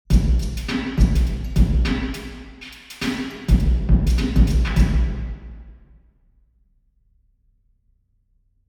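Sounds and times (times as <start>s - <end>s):
drum in church: 0.1s - 5.8s.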